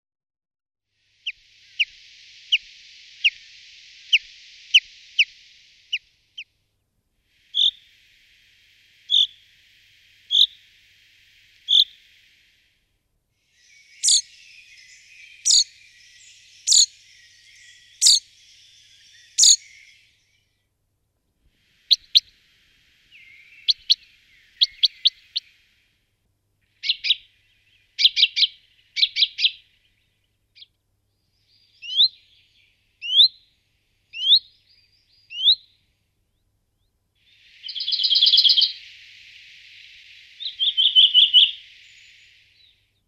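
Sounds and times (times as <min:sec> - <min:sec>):
high hiss: 0:01.0 - 0:20.5, 0:21.4 - 0:28.0, 0:37.2 - 0:43.0
common chaffinch calls: 0:07.5 - 0:08.2, 0:08.9 - 0:12.5, 0:13.6 - 0:20.2, 0:21.7 - 0:22.4, 0:23.1 - 0:25.6, 0:26.7 - 0:29.8, 0:31.5 - 0:33.4, 0:34.1 - 0:35.7, 0:37.3 - 0:42.8.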